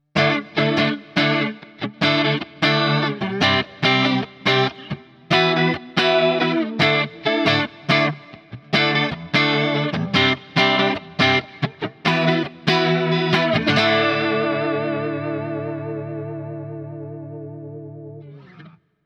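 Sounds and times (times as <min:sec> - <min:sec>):
Eventide Tricerachorus chorus effect: 0:00.0 - 0:19.0.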